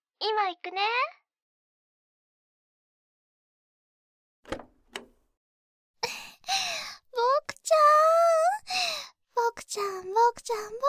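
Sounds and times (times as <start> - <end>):
speech: 0.2 - 1.2, 7.2 - 10.8
door opening: 4.4 - 5.2.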